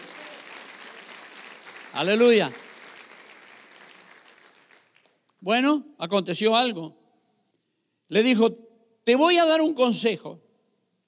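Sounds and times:
audience applauding: 0:00.0 - 0:05.3
speech: 0:02.0 - 0:02.6, 0:05.5 - 0:07.0, 0:08.1 - 0:10.4.

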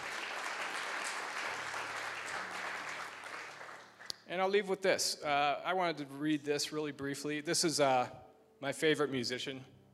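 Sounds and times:
crowd applause: 0:00.0 - 0:04.1
speech: 0:04.3 - 0:09.8.

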